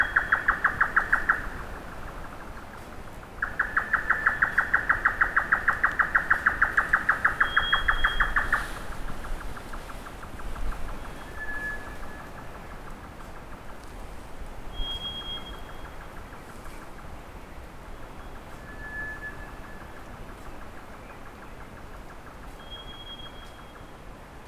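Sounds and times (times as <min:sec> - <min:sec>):
grey nightjar Caprimulgus jotaka giving dry knocking calls: 0:00.0 - 0:01.6, 0:03.4 - 0:12.5, 0:14.8 - 0:16.4, 0:18.6 - 0:23.9.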